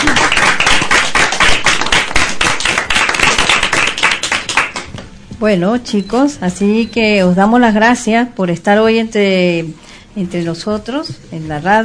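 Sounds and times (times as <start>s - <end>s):
audience applause: 0.0s - 4.9s
speech: 5.4s - 11.8s.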